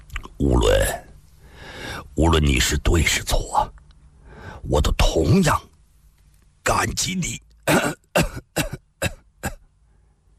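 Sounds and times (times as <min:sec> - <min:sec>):
speech: 0:02.2 - 0:03.8, 0:04.6 - 0:05.7, 0:06.6 - 0:07.9
person coughing: 0:07.7 - 0:09.7.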